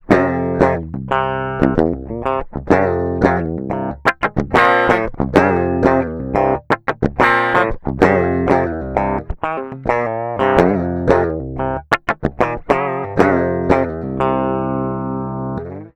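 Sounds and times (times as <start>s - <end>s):
dry guitar: 0.0s - 15.9s.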